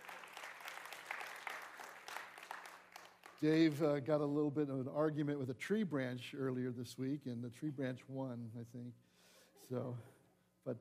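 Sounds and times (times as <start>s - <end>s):
audience clapping: 0.0s - 4.0s
speech: 3.4s - 9.0s, 9.7s - 10.7s.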